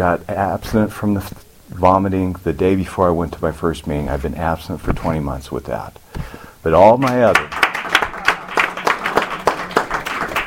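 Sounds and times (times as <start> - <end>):
speech: 0.0 - 7.6
small group clapping: 7.0 - 10.4.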